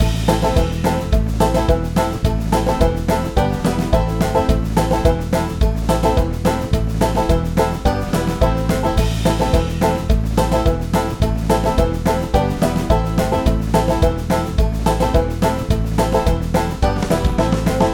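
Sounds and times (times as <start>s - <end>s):
drums: 0.0s - 17.9s.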